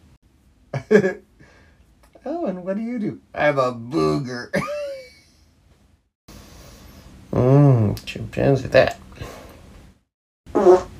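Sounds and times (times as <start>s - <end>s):
speech: 0.8s - 1.3s, 2.2s - 4.8s, 8.0s - 9.0s
short squeaky fart: 10.5s - 10.9s.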